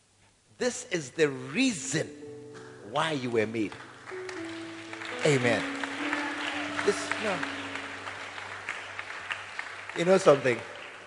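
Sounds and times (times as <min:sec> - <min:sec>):
speech: 0:00.6 - 0:02.2, 0:02.9 - 0:03.9, 0:05.2 - 0:05.8, 0:06.8 - 0:07.6, 0:10.0 - 0:10.7
audience clapping: 0:03.4 - 0:11.0.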